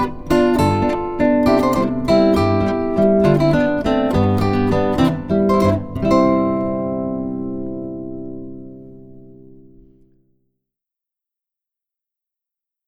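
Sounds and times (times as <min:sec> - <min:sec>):
zither: 0:00.0 - 0:09.1.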